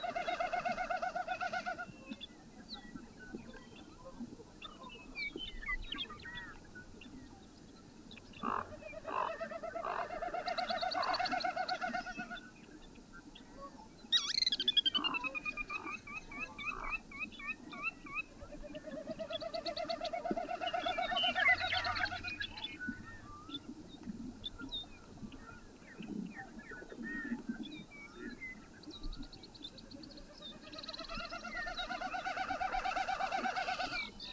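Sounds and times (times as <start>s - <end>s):
bird song with short chirps and rapid repeated notes: 0.0s - 34.3s.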